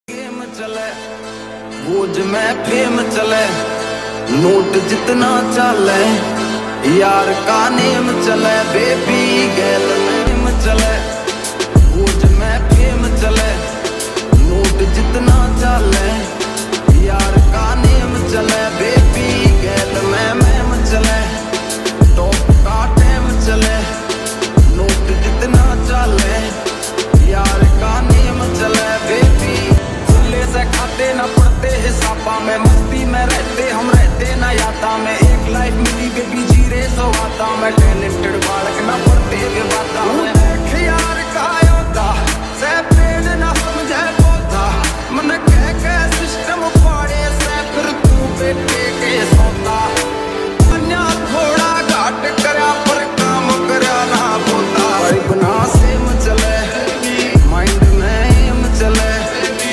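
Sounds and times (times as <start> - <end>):
Bollywood sad song remix: 0.1 - 59.7.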